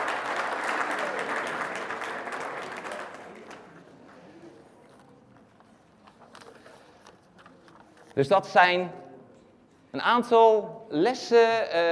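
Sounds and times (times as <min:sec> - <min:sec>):
audience applause: 0:00.0 - 0:03.9
speech: 0:08.2 - 0:09.0, 0:09.9 - 0:11.9.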